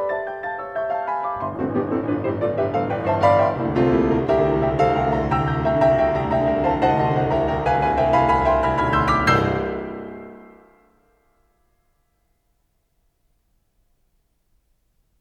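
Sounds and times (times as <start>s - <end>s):
piano variations in C: 0.0s - 11.3s.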